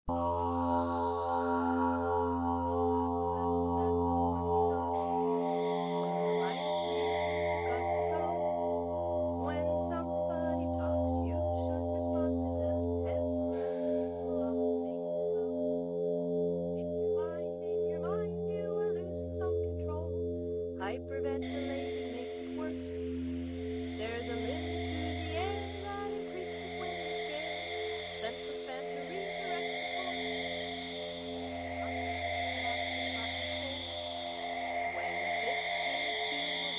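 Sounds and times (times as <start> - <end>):
space music: 0.1 - 36.7.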